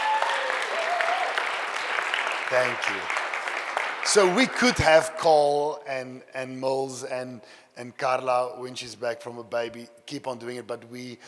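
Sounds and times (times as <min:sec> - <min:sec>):
audience applause: 0:00.0 - 0:04.9
speech: 0:02.5 - 0:03.2, 0:04.0 - 0:11.2.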